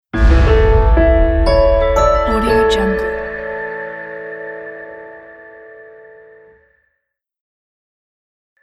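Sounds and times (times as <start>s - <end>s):
short logo jingle: 0.2s - 4.3s.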